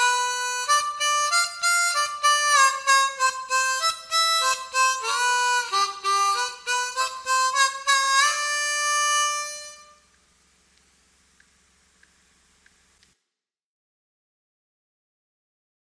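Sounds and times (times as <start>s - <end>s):
diatonic harmonica playing blues lick: 0.0s - 10.1s.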